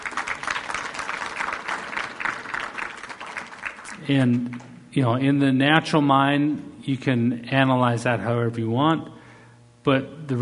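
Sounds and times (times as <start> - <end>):
audience applause: 0.0 - 4.7
speech: 4.0 - 9.2, 9.8 - 10.4.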